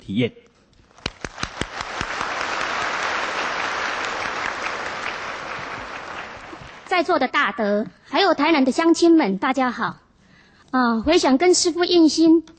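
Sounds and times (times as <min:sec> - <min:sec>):
speech: 0:00.1 - 0:00.5, 0:06.9 - 0:10.0, 0:10.7 - 0:12.5
audience applause: 0:01.0 - 0:07.0.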